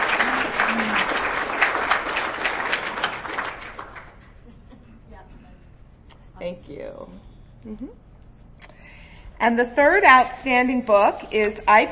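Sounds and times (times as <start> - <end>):
audience applause: 0.0 - 4.2
speech: 7.0 - 8.1, 9.4 - 11.9.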